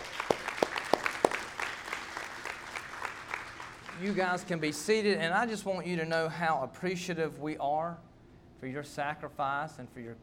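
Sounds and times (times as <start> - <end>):
audience applause honouring people for sacrifice and commitment: 0.0 - 4.2
speech: 4.0 - 10.2.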